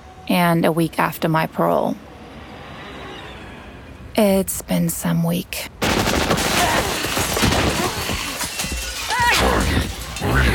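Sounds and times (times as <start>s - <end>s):
speech: 0.3s - 2.1s, 4.2s - 5.8s
dense gunfire in a sci-fi action drama: 5.8s - 9.0s
shattering crashes: 5.8s - 10.5s.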